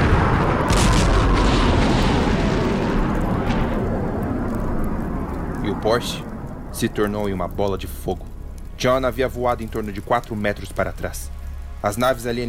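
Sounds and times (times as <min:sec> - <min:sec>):
missiles exploding across a base: 0:00.0 - 0:09.0
crackling debris: 0:00.0 - 0:12.4
speech: 0:05.8 - 0:12.4.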